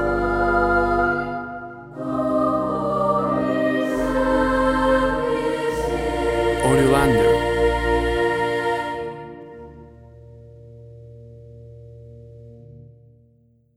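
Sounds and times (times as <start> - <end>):
pastorale choir singing: 0.0 - 9.5.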